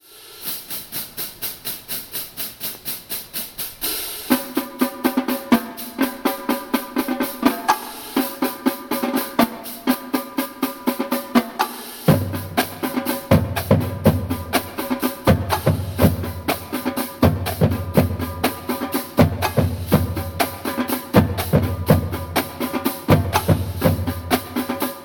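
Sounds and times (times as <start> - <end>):
marching band drumline: 0.0 - 25.0.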